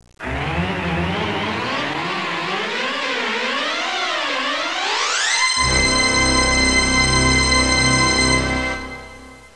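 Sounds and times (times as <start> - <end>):
theme music: 0.2 - 9.5.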